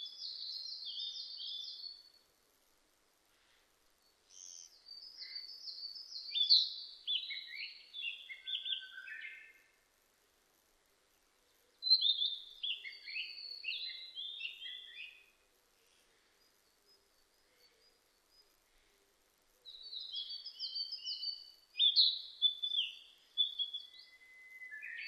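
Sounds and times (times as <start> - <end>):
Narcissus flycatcher singing varied whistles and trills: 0.0 - 2.2, 4.0 - 9.7, 11.8 - 15.4, 19.6 - 25.0.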